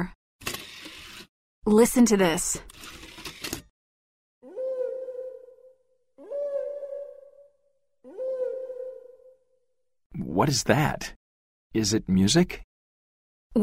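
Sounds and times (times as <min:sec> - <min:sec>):
speech: 0:01.7 - 0:03.0, 0:10.4 - 0:12.7
whale song recording: 0:04.4 - 0:09.6.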